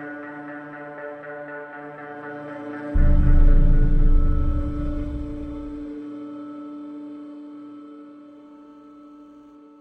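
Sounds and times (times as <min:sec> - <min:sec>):
drama pad: 0:02.9 - 0:05.9.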